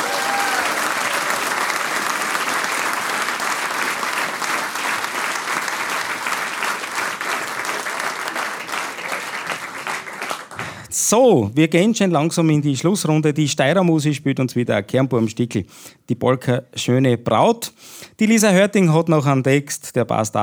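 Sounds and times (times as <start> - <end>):
audience applause: 0.0 - 10.9
speech: 11.1 - 20.4.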